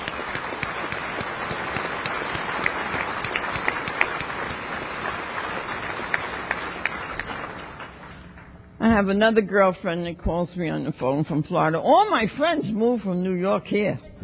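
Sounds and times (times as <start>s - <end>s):
audience applause: 0.0s - 8.3s
speech: 9.0s - 14.1s.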